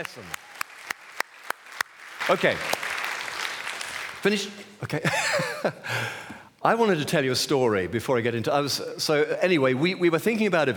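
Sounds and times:
speech: 0.0 - 0.5, 2.3 - 2.8, 4.2 - 10.7
audience applause: 0.0 - 4.4
laughter: 4.8 - 5.9.

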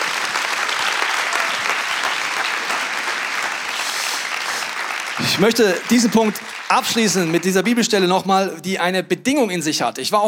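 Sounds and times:
audience applause: 0.0 - 8.1
speech: 5.2 - 10.2.

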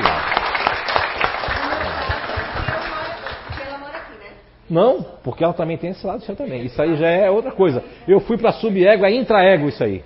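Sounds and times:
audience clapping: 0.0 - 3.9
speech: 4.7 - 10.0.

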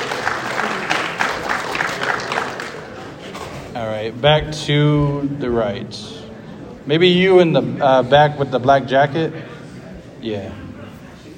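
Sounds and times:
audience applause: 0.0 - 3.2
speech: 4.0 - 6.2, 6.8 - 9.5, 10.2 - 10.6.

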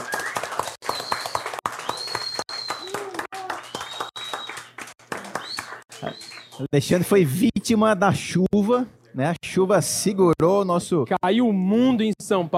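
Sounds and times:
whistles: 0.0 - 6.6
crowd clapping: 0.0 - 6.7
people cheering: 0.0 - 6.7
speech: 6.0 - 12.5.

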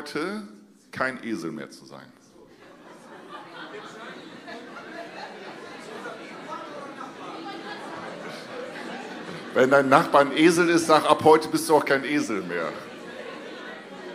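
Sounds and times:
speech: 0.0 - 2.2, 9.5 - 12.9
crowd murmuring: 2.4 - 14.1
people chuckling and laughing: 2.5 - 11.2, 12.0 - 14.1.

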